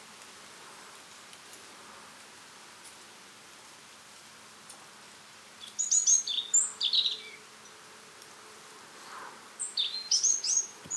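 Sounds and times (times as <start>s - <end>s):
European robin singing: 5.6s - 7.8s, 9.6s - 10.9s.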